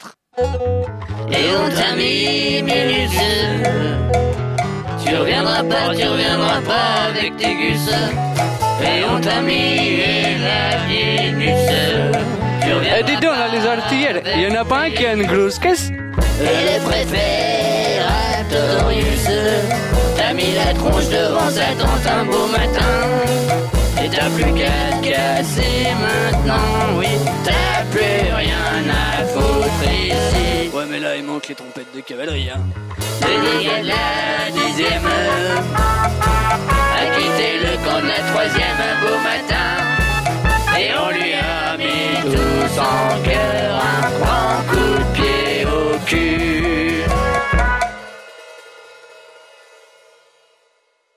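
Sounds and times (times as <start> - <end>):
chanson: 0.4 - 48.5.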